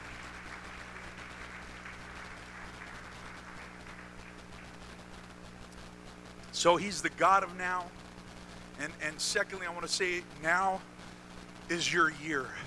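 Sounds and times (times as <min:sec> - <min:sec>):
crowd clapping: 0:00.0 - 0:05.0
speech: 0:06.6 - 0:08.0, 0:08.8 - 0:10.9, 0:11.7 - 0:12.6.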